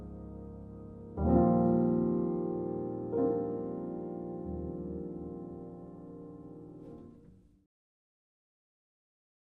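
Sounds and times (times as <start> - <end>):
solo piano: 0.0 - 7.7.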